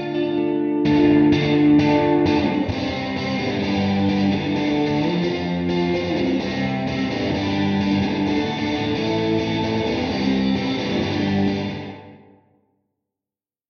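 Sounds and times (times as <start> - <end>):
guitar with plate reverb: 0.0 - 12.4.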